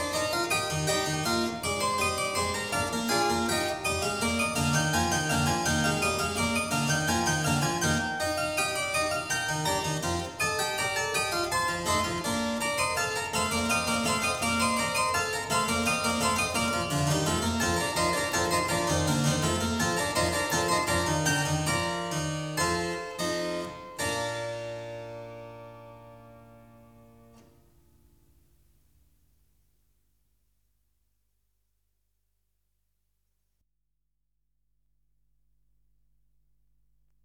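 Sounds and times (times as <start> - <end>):
clavier fugue in B-flat major: 0.0 - 27.5.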